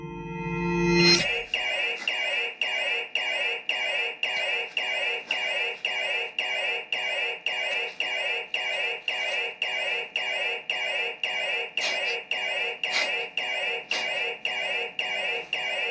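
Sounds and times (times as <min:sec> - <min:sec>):
alarm ringing: 0:00.0 - 0:15.8.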